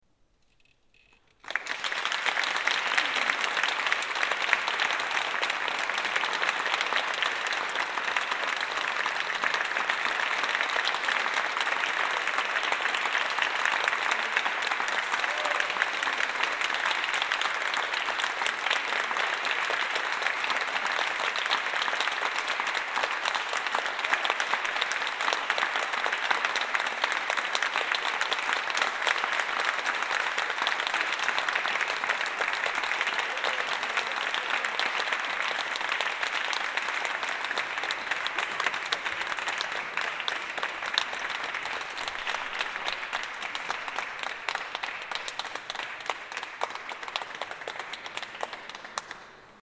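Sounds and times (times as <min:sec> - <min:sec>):
applause: 0:01.0 - 0:49.6.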